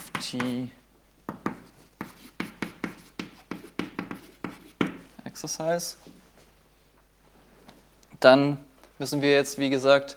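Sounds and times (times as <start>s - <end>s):
writing on a board during a maths lecture: 0.0s - 0.6s, 1.3s - 5.1s
speech: 0.3s - 0.8s, 5.4s - 6.1s, 8.2s - 10.1s.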